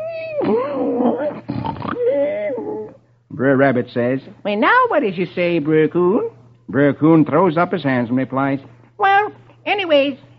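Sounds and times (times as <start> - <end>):
voice imitating loud exaggerated snoring: 0.2 - 3.0
speech: 3.4 - 9.1, 9.7 - 10.2.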